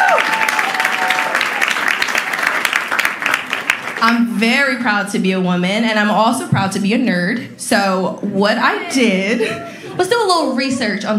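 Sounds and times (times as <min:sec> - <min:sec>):
audience applause: 0:00.0 - 0:04.1
speech: 0:04.0 - 0:11.1.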